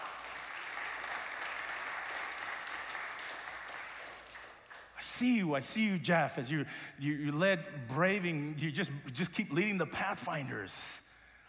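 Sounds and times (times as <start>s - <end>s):
audience applause: 0.0s - 5.0s
speech: 5.1s - 11.0s.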